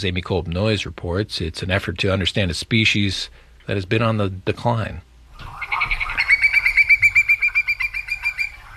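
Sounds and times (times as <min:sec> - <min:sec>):
speech: 0:00.0 - 0:05.1
Hudsonian whimbrel trill call: 0:05.4 - 0:08.7.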